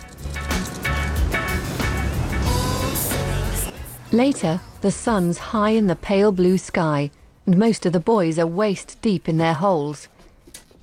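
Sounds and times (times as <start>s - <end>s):
truck driving away: 0.0s - 6.0s
speech: 4.1s - 10.2s.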